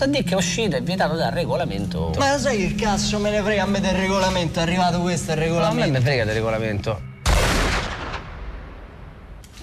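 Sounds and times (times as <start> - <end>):
speech: 0.0 - 7.1
gunshots: 7.2 - 8.4.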